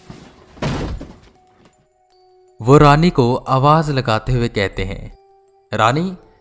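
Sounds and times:
things falling down: 0:00.0 - 0:01.8
speech: 0:02.6 - 0:06.2.

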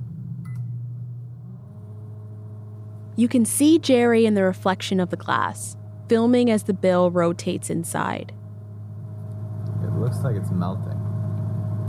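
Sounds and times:
microwave oven running: 0:00.0 - 0:11.8
speech: 0:03.2 - 0:08.4, 0:10.0 - 0:11.0.

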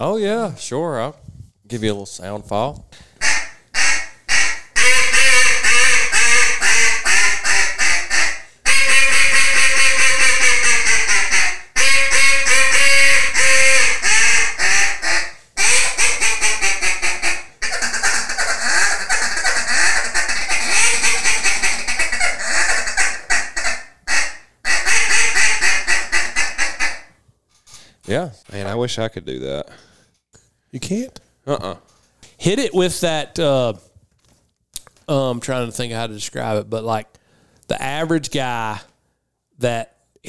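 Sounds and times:
speech: 0:00.0 - 0:03.1, 0:28.8 - 0:29.8, 0:30.7 - 0:33.9, 0:35.1 - 0:38.9, 0:39.6 - 0:40.2
hand-tuned duck call being blown: 0:03.2 - 0:27.1.

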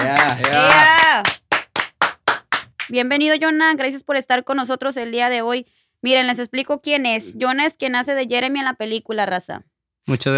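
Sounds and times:
speech: 0:00.0 - 0:01.3, 0:02.9 - 0:10.3
applause: 0:00.0 - 0:03.0.

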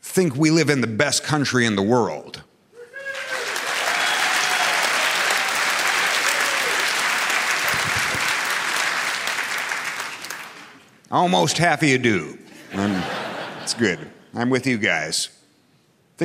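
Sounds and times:
speech: 0:00.2 - 0:02.5, 0:11.1 - 0:15.4
cheers and whistles: 0:02.8 - 0:07.0
large crowd applause: 0:03.0 - 0:10.8
laughter: 0:12.5 - 0:14.2.

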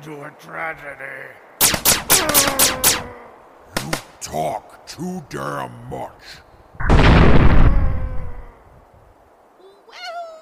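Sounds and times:
speech: 0:00.0 - 0:07.6
explosion blast: 0:06.8 - 0:08.5.

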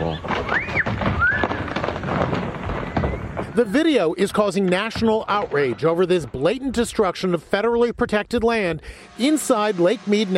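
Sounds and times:
boulders crashing down a cliff: 0:00.0 - 0:07.0
rising-and-falling whistle-like cries: 0:00.1 - 0:01.8, 0:02.8 - 0:03.6
speech: 0:03.6 - 0:10.3.

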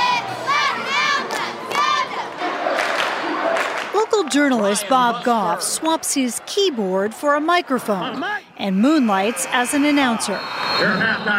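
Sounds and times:
crowd cheering at a high school football game: 0:00.0 - 0:11.3
speech: 0:04.2 - 0:11.3.

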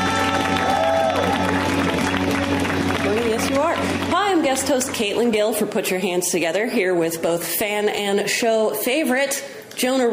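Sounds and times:
audience applause: 0:00.0 - 0:05.0
speech: 0:04.5 - 0:10.1.

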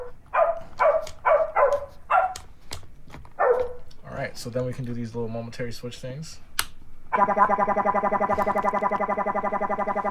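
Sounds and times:
circuit-bent baby toy piano playing synthetic dog bark: 0:00.0 - 0:02.4, 0:03.4 - 0:03.8, 0:07.1 - 0:07.5
speech: 0:04.4 - 0:06.5, 0:07.2 - 0:10.0.

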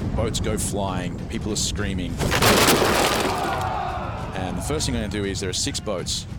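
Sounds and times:
speech: 0:00.2 - 0:03.0, 0:04.6 - 0:06.3
tidal wave crashing: 0:02.2 - 0:03.7.

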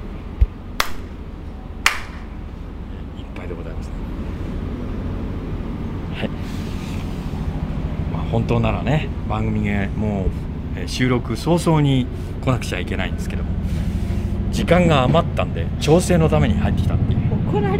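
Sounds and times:
low rumble: 0:00.0 - 0:17.7
ritual hand clapping at shrine: 0:00.8 - 0:01.1, 0:01.8 - 0:02.3
speech: 0:03.4 - 0:04.6, 0:06.2 - 0:06.8, 0:08.2 - 0:13.9, 0:14.6 - 0:17.7.

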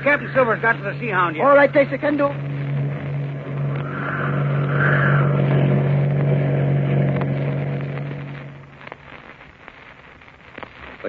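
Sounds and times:
speech: 0:00.0 - 0:02.5
motor cruiser engine droning while speeding across harbor: 0:00.0 - 0:08.8.

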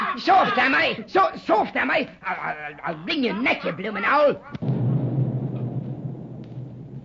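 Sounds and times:
speech: 0:00.2 - 0:04.6
distant explosion: 0:04.6 - 0:07.0.

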